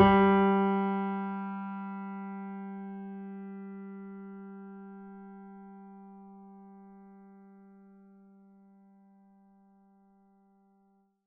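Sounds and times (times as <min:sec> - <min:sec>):
mini grand piano: 0:00.0 - 0:07.3.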